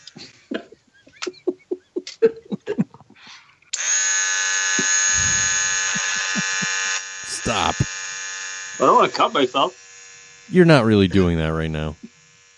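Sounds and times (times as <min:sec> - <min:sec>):
laughter: 0:00.5 - 0:03.4, 0:05.2 - 0:07.9
electric shaver buzzing: 0:03.8 - 0:12.5
speech: 0:08.8 - 0:09.8, 0:10.5 - 0:12.0.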